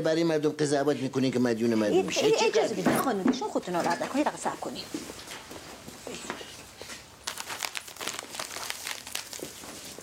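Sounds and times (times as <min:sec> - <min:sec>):
speech: 0:00.0 - 0:05.3
wafer snack wrapper crinkling: 0:07.2 - 0:10.0.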